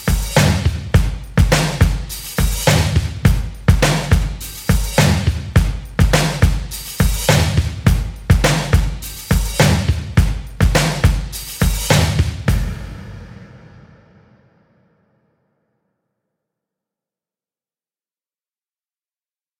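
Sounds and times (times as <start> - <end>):
instrumental loop: 0.0 - 12.5.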